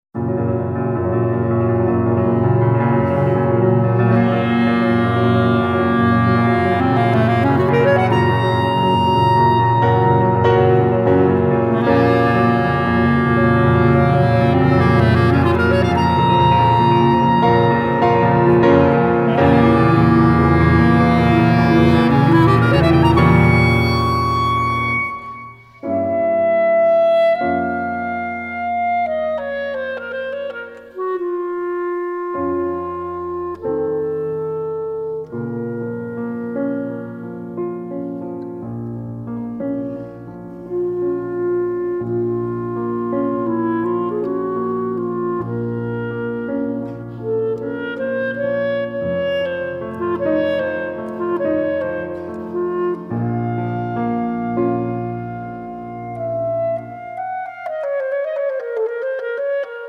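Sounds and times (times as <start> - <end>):
classical duo introduction maestoso: 0.2 - 59.8.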